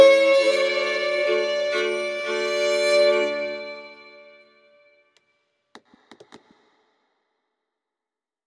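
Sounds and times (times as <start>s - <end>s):
bagpipe: 0.0s - 4.9s.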